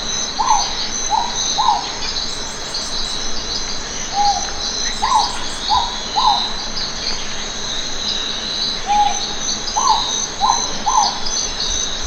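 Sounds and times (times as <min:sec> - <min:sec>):
Philippine hawk-owl calling with short hollow notes: 0:00.0 - 0:02.2, 0:04.0 - 0:06.8, 0:07.4 - 0:11.9.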